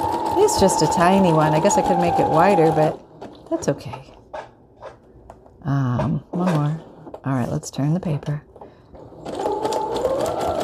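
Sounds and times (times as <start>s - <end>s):
sewing machine stitching a zigzag through paper: 0.0s - 3.8s, 9.0s - 10.6s
speech: 0.5s - 4.1s, 5.6s - 8.5s.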